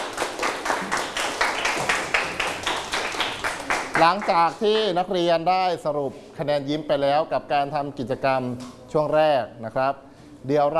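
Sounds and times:
classroom clapping for a group: 0.0s - 4.9s
speech: 4.0s - 10.7s.

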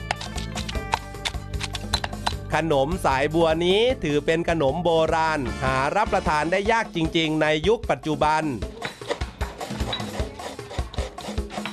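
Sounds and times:
scraping coconut flesh: 0.0s - 2.2s, 8.7s - 11.7s
speech: 2.5s - 8.7s.

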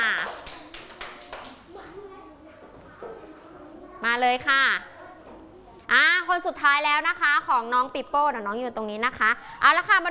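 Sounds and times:
children clapping: 0.0s - 1.8s
speech: 4.0s - 4.9s, 5.9s - 10.1s.

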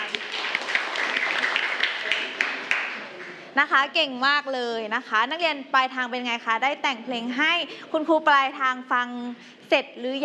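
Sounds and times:
students clapping for a classmate: 0.0s - 3.4s
speech: 3.6s - 10.2s.

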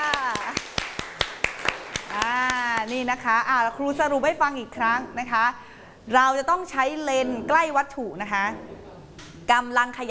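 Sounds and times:
classroom applause: 0.0s - 2.9s
speech: 2.9s - 8.8s, 9.5s - 10.0s.

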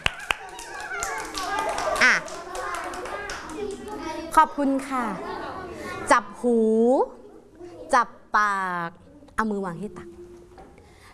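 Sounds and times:
children clapping: 0.0s - 4.3s
speech: 4.4s - 5.3s, 6.1s - 7.2s, 7.9s - 10.2s.

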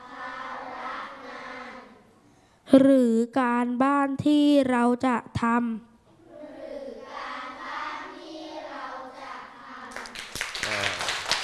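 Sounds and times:
speech: 2.7s - 5.9s
students clapping hands: 9.9s - 11.4s.

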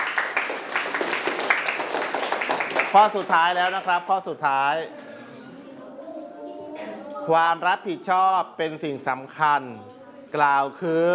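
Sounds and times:
classroom of students clapping for themselves: 0.0s - 4.0s
speech: 2.9s - 5.0s, 7.2s - 11.1s.

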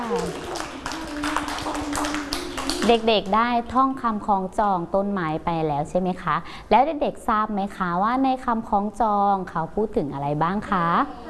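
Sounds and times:
children clapping for themselves: 0.0s - 3.4s
speech: 0.1s - 0.6s, 2.9s - 11.2s.

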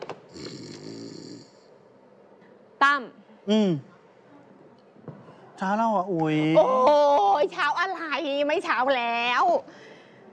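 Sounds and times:
man snoring asleep on a sofa: 0.3s - 1.7s
speech: 2.8s - 3.9s, 5.6s - 9.8s.

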